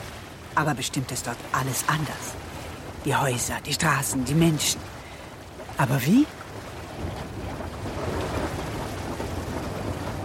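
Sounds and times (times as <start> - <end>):
churning sea water in a storm: 0.0 - 10.2
rain in a storm at sea: 0.0 - 10.2
storm wind roaring at sea: 0.0 - 10.2
speech: 0.6 - 2.4, 3.0 - 5.0, 5.8 - 6.4
thunder in a storm at sea: 6.9 - 10.2.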